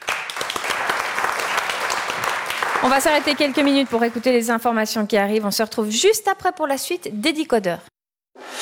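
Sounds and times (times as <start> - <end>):
audience applause: 0.0 - 4.6
speech: 2.8 - 7.9.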